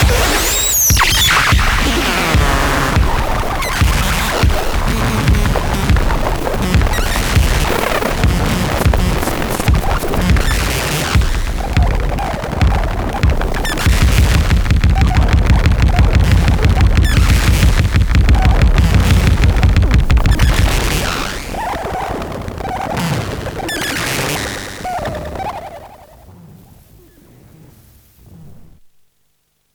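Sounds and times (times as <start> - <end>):
drum machine beat: 0.0 - 23.7.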